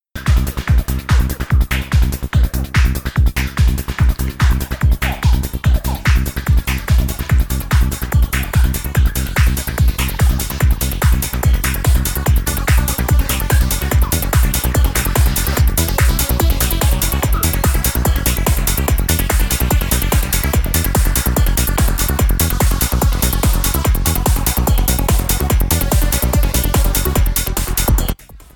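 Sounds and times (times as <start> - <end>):
synth partials: 0.2 - 28.5.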